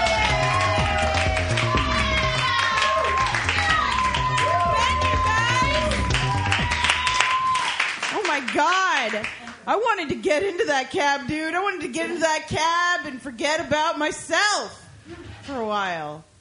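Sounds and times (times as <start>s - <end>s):
audience cheers and whoops: 0.0s - 7.9s
audience applause for a comedian: 0.0s - 9.6s
speech: 9.8s - 16.3s.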